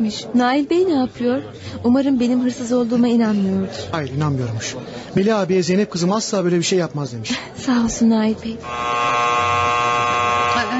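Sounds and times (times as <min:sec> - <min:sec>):
speech: 0:00.0 - 0:09.2
faint voices murmuring: 0:00.0 - 0:10.7
electric buzzer signaling end of visiting hours: 0:08.6 - 0:10.7.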